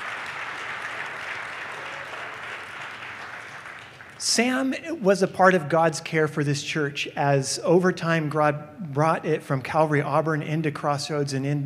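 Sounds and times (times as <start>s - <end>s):
audience applause: 0.0s - 4.7s
speech: 4.2s - 11.6s.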